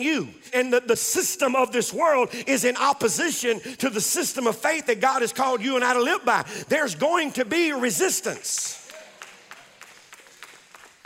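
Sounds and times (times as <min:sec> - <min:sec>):
speech: 0:00.0 - 0:08.8
few people clapping in a church congregation: 0:08.5 - 0:11.0.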